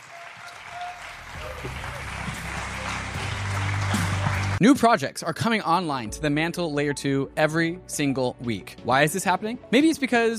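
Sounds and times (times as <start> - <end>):
audience applause: 0.0 - 4.6
speech: 1.6 - 1.9, 4.6 - 10.3.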